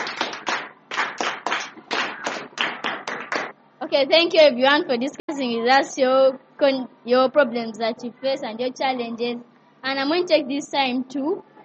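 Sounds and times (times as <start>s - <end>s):
group clapping: 0.0s - 3.6s
speech: 3.9s - 11.5s.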